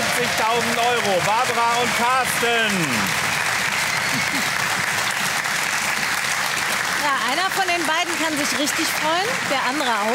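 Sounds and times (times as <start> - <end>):
studio audience applause: 0.0 - 10.1
speech: 0.5 - 3.2, 4.1 - 4.7, 7.0 - 10.1.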